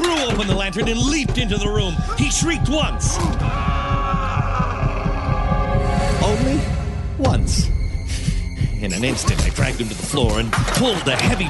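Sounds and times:
speech: 0.4s - 3.9s, 6.2s - 7.7s, 8.8s - 11.4s
muffled heartbeat: 0.7s - 5.8s.

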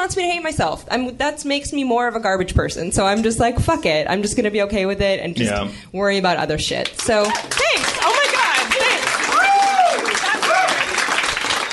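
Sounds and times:
speech: 0.0s - 8.2s
audience applause: 7.0s - 11.7s.

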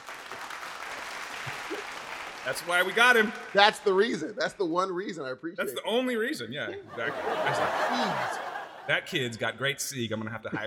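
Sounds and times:
round of applause: 0.0s - 4.0s
speech: 2.4s - 10.6s
laughter: 6.5s - 9.4s.

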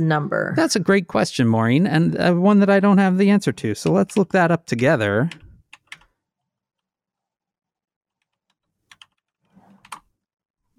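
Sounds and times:
speech: 0.0s - 5.4s
quiet keyboard typing: 5.3s - 6.1s, 8.2s - 10.1s.

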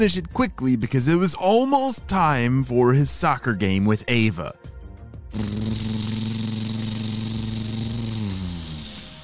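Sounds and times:
speech: 0.0s - 4.7s, 5.3s - 6.8s
lawn mower engine running: 5.4s - 9.2s.

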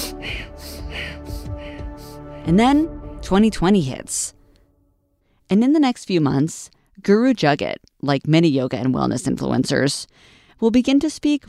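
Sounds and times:
Kundalini breath of fire yoga breathing: 0.0s - 2.5s
speech: 2.4s - 4.4s, 5.5s - 11.4s.

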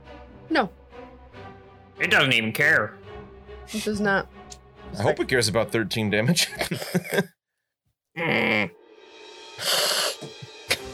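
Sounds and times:
speech: 0.5s - 0.8s, 2.0s - 3.0s, 3.7s - 7.4s, 8.2s - 8.8s
voice imitating a creature's cat-like meow: 8.2s - 8.8s
breathy hissing vocal burst: 9.6s - 10.9s.

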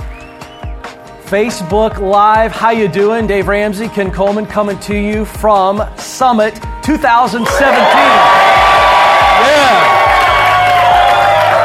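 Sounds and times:
speech: 1.3s - 8.5s
crowd cheering and whooping at a live event: 7.4s - 11.6s.

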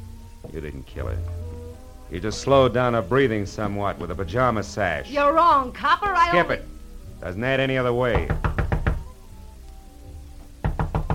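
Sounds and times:
speech: 0.6s - 1.4s, 2.1s - 8.5s
knocking on a door: 8.1s - 9.1s, 10.4s - 11.1s.

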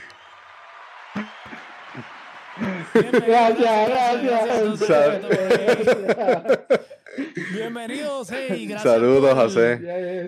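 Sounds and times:
recorded applause sound effect: 0.0s - 6.5s
laughter: 0.9s - 9.3s
speech: 1.2s - 10.2s.

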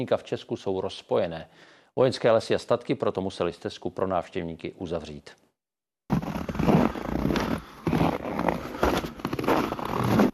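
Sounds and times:
speech: 0.0s - 5.4s
frozen snow crunching underfoot: 6.1s - 10.3s.

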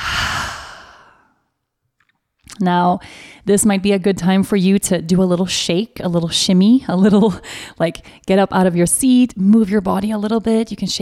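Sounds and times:
open-mouthed exhale during a guided breathing exercise: 0.0s - 1.4s
speech: 2.6s - 11.0s.

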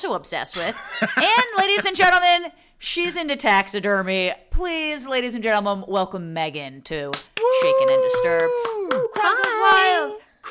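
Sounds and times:
speech: 0.0s - 10.5s
laughter: 0.6s - 2.1s
single voice imitating a cheering crowd: 7.4s - 10.1s.

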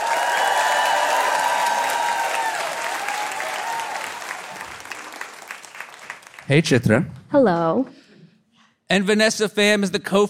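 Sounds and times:
audience applause welcoming a food writer and cookbook author at a live show: 0.0s - 6.8s
speech: 6.5s - 8.0s, 8.9s - 10.2s.

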